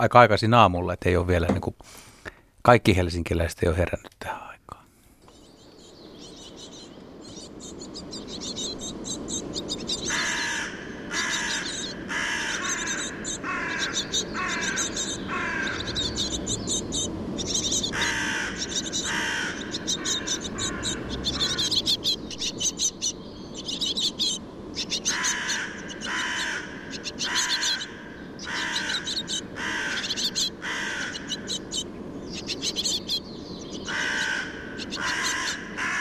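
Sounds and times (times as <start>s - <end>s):
speech: 0.0s - 4.8s
hum: 0.0s - 35.9s
birds chirping: 5.2s - 35.9s
crows giving alarm calls: 9.7s - 35.9s.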